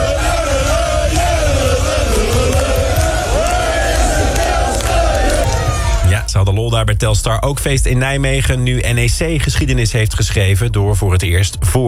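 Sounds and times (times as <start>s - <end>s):
Telstar football fans cheering and singing to greet their team bus: 0.0s - 6.0s
speech: 6.8s - 11.8s.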